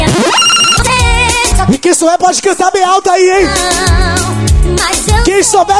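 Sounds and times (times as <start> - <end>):
cell phone message alert ringtone: 0.1 - 1.0
speech: 2.0 - 5.7.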